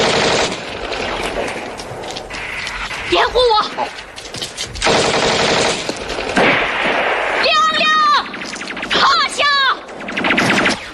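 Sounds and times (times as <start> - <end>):
loud dense gunfire: 0.0 - 1.5, 4.8 - 10.9.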